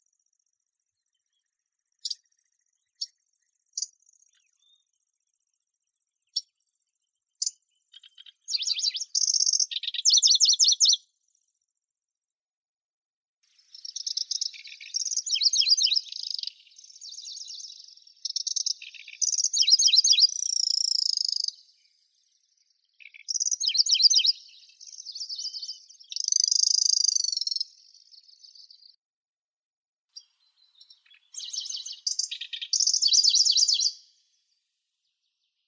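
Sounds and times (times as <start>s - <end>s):
Locustella certhiola singing: 7.4s - 11.0s, 13.7s - 22.0s, 22.9s - 28.9s, 30.2s - 34.1s.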